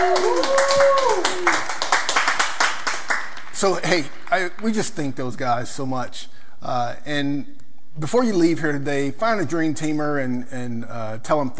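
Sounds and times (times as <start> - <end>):
whoops and cheers: 0.0 - 1.8
crowd applause: 0.0 - 4.8
speech: 3.6 - 11.5.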